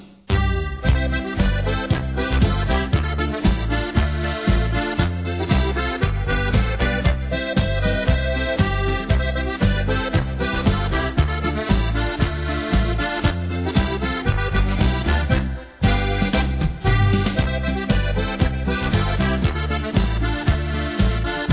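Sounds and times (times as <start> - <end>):
harmonica: 0.3 - 21.5.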